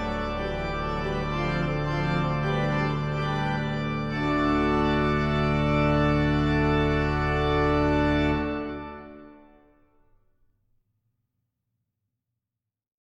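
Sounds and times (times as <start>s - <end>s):
organ playing a hornpipe: 0.0s - 9.6s.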